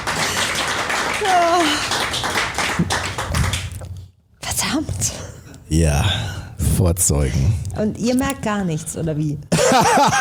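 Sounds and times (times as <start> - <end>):
audience applause: 0.0 - 3.7
speech: 1.2 - 1.9, 5.7 - 10.2.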